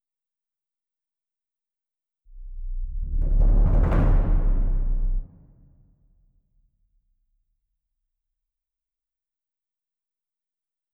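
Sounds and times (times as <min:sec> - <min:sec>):
bass drum: 0:02.3 - 0:05.8.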